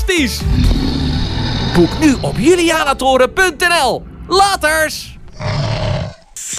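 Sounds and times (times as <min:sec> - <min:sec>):
speech: 0:00.1 - 0:01.1, 0:01.7 - 0:05.5
dinosaur roar in a children's advert for a dino trail: 0:00.4 - 0:03.0, 0:05.2 - 0:06.4.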